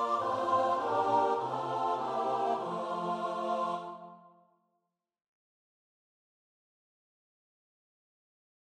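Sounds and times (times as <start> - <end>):
choir singing: 0.0 - 4.5.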